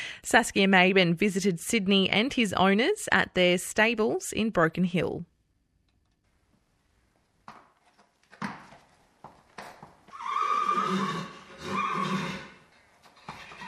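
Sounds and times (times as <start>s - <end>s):
speech: 0.2s - 5.3s
former racehorse neighing at its stables in Broken Hill: 10.1s - 12.7s, 13.3s - 13.6s.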